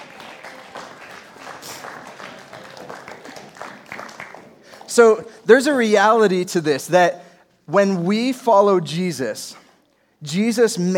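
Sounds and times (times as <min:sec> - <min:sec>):
audience applause: 0:00.0 - 0:04.9
speech: 0:05.0 - 0:09.6, 0:10.2 - 0:10.9.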